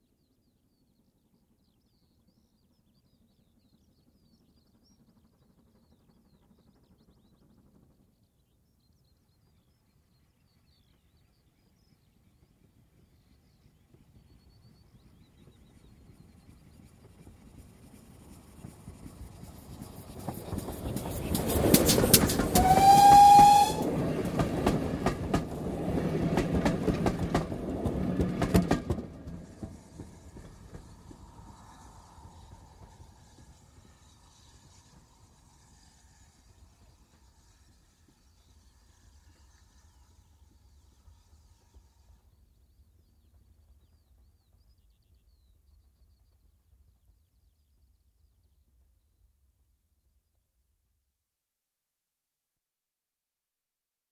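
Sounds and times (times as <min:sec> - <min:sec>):
steam train coasting past: 0:15.0 - 0:44.3
steam train whistle: 0:21.8 - 0:24.0.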